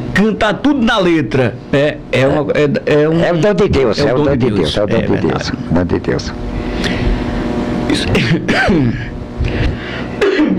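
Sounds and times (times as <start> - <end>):
speech: 0.2 - 7.0, 7.9 - 9.8
coughing: 7.9 - 10.5.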